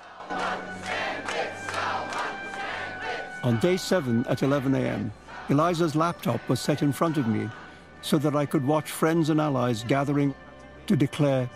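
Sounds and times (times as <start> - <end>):
supportive crowd cheering: 0.0 - 7.8
speech: 3.4 - 11.5.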